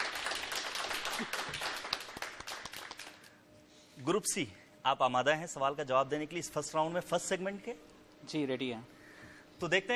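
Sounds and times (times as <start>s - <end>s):
quiz show audience applauding a correct answer: 0.0s - 3.3s
speech: 4.0s - 9.0s, 9.6s - 9.9s.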